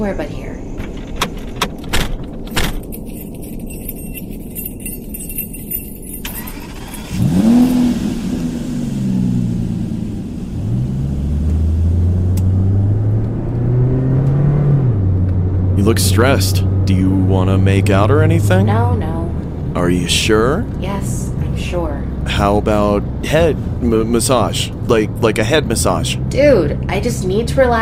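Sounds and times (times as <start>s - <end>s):
speech: 0.0s - 0.5s, 15.8s - 19.1s, 19.8s - 21.1s, 21.7s - 27.8s
keys jangling: 1.0s - 7.9s
car engine starting, revving and driving off: 1.4s - 27.8s.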